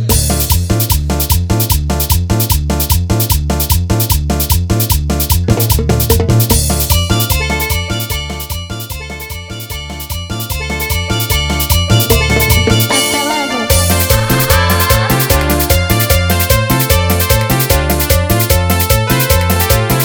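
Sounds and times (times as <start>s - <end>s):
instrumental music: 0.1s - 20.0s.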